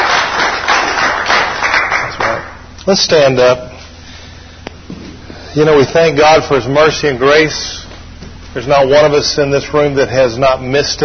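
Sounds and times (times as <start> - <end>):
church audience applauding: 0.0 - 2.6
speech: 2.9 - 3.7, 5.6 - 7.8, 8.5 - 11.0.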